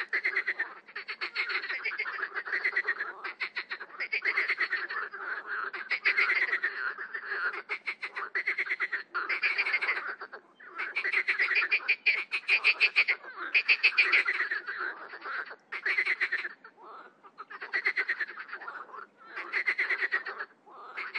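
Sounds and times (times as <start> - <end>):
marsh frog croaking: 0.0 - 21.1.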